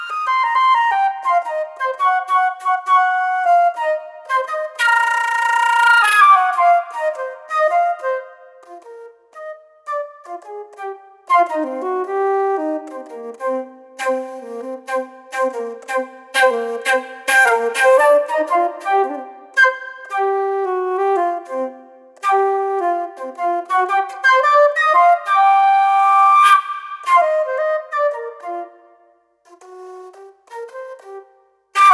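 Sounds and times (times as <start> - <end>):
flute solo: 0.0 - 31.9.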